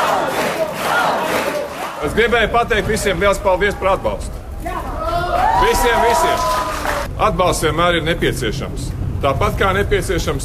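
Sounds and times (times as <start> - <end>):
large crowd cheering and shouting outside parliament: 0.0 - 2.2, 4.5 - 7.1
speech: 2.0 - 4.8, 5.6 - 6.5, 7.2 - 10.4.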